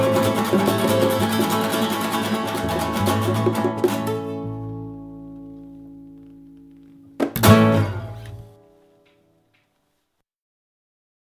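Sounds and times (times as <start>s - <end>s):
acoustic session music: 0.0s - 8.8s.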